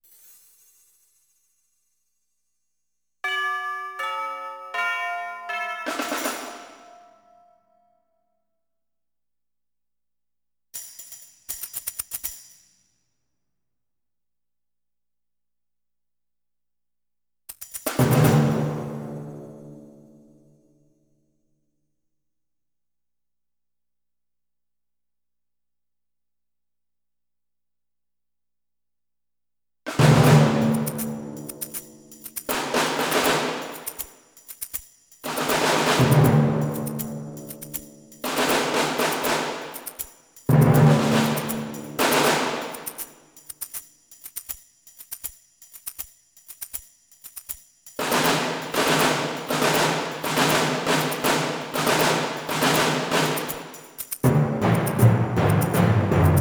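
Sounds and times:
percussion: 0.0 - 1.9, 3.2 - 7.6, 10.7 - 13.0, 17.5 - 20.5, 29.9 - 56.3.

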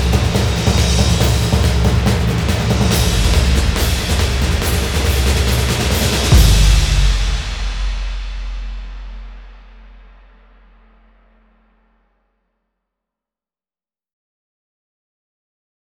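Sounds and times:
drums: 0.0 - 11.5.

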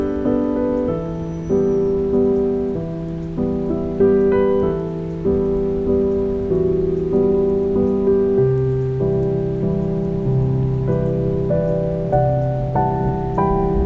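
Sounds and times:
piano: 0.0 - 13.8
thunderstorm: 0.0 - 13.8.

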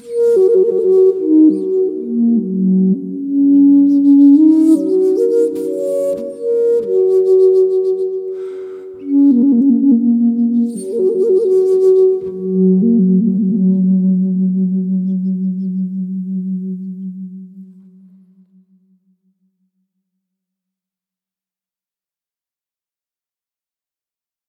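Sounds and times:
Anasazi flute playing: 0.0 - 18.8.

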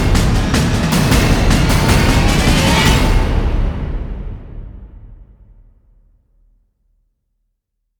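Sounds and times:
drums: 0.0 - 5.9.

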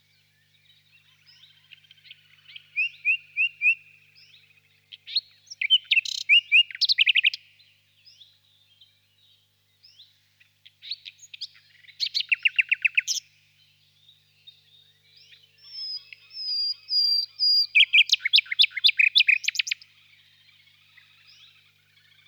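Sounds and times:
nightingale singing in a swamp: 0.0 - 10.1, 10.8 - 22.2.

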